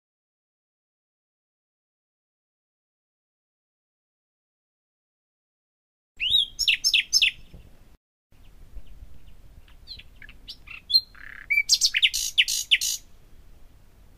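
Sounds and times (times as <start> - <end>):
common nightingale song: 6.2 - 14.1.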